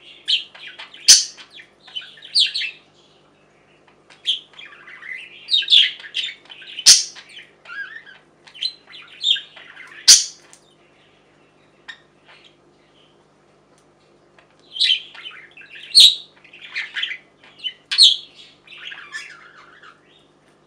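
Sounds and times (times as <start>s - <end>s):
budgerigar calls: 0.3s - 2.8s, 4.2s - 10.5s, 14.8s - 20.1s.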